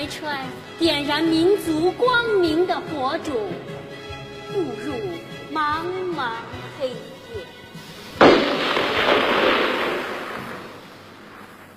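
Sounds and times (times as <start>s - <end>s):
speech: 0.0s - 3.8s, 4.5s - 7.5s
burst of gunfire sound effect in a dramatized wartime scene: 8.2s - 11.7s.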